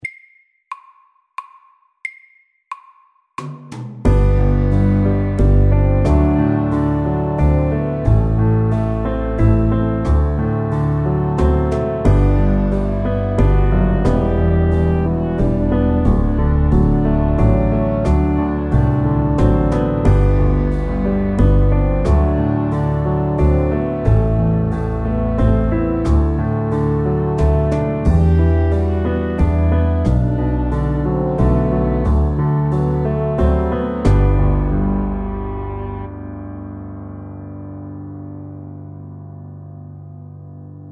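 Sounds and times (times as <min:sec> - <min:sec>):
soft rock music: 0:04.1 - 0:38.6.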